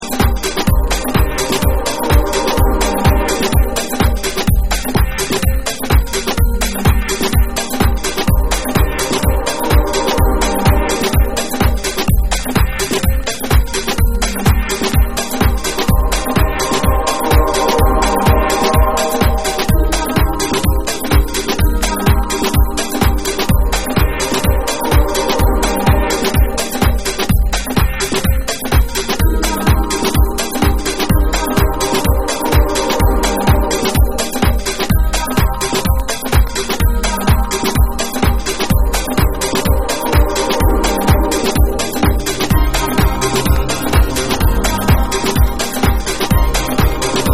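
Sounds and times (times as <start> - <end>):
African drum: 0.0 - 47.3.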